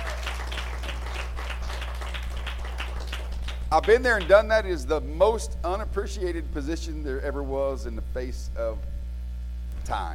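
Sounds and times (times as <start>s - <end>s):
audience clapping: 0.0s - 4.5s
low electrical hum: 0.0s - 10.1s
speech: 3.7s - 8.9s, 9.9s - 10.1s.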